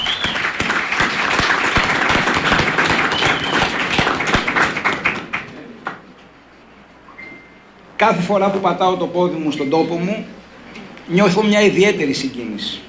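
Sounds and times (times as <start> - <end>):
audience applause: 0.0 - 5.7
speech: 8.0 - 10.4, 11.1 - 12.8.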